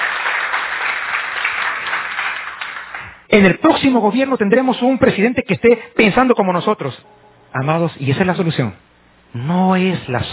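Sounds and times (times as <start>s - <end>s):
church congregation applauding during a sermon: 0.0s - 3.3s
speech: 3.3s - 10.3s.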